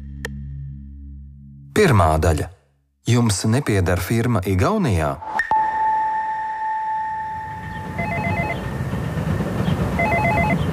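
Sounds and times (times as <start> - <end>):
speech: 1.8 - 5.4
intercom at a multi-storey apartment block in Pļavnieki Riga steady tone: 5.5 - 8.8, 10.0 - 10.6.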